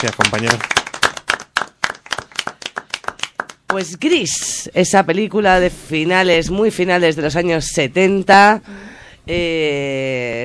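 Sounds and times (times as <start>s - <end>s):
speech: 0.0s - 0.8s, 3.8s - 10.4s
small studio audience clapping for a contestant: 0.0s - 4.0s.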